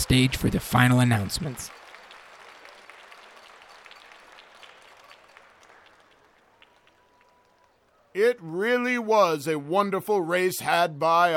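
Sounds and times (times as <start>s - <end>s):
crowd cheering and applauding: 0.0s - 8.1s
speech: 0.1s - 1.8s, 8.2s - 11.3s.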